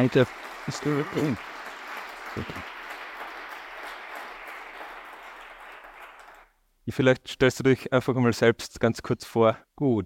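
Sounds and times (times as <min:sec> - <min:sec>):
speech: 0:00.0 - 0:01.5, 0:02.4 - 0:02.7, 0:06.9 - 0:10.0
audience applause: 0:00.0 - 0:06.5.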